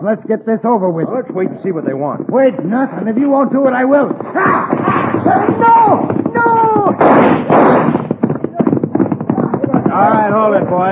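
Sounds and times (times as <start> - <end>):
speech: 0.0 - 7.2, 10.0 - 10.9
gunshots in an old Western drama cutting a rope: 4.2 - 10.7.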